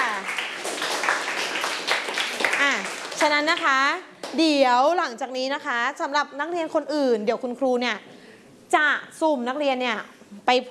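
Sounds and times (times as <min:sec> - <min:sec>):
students clapping: 0:00.0 - 0:04.4
speech: 0:03.2 - 0:08.1, 0:08.7 - 0:10.6.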